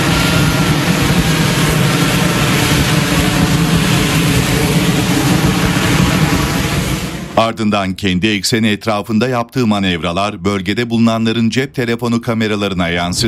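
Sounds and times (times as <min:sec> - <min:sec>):
F-35 fighter jet flying at low altitude near the Jefferson Memorial: 0:00.0 - 0:07.7
speech: 0:07.4 - 0:13.2.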